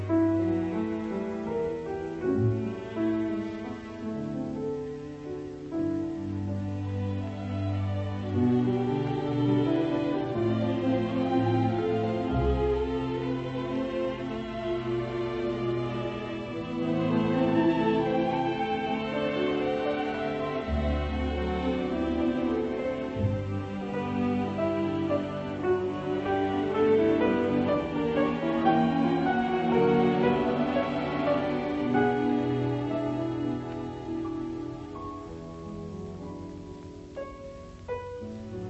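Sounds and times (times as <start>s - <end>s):
piano piece: 0.0s - 38.6s.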